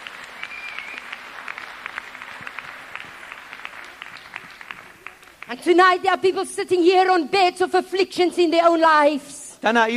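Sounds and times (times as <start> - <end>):
audience clapping: 0.0 - 5.8
speech: 5.5 - 9.9.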